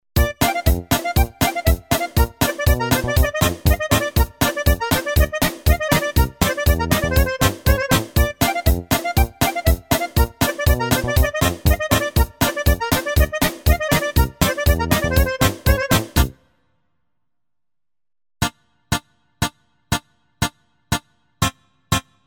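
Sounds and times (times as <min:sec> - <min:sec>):
Guild fretted kontra: 0:00.2 - 0:16.4.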